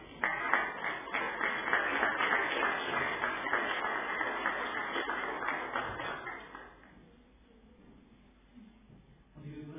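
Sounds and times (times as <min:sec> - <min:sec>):
church audience applause: 0:00.0 - 0:06.9.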